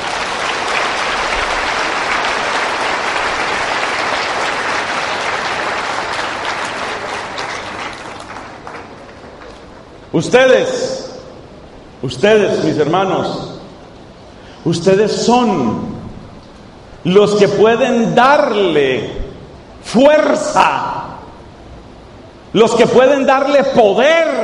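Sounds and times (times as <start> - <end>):
audience applause: 0.0 - 10.1
speech: 10.2 - 10.9, 12.0 - 13.4, 14.6 - 15.9, 17.0 - 19.2, 19.8 - 20.9, 22.5 - 24.4.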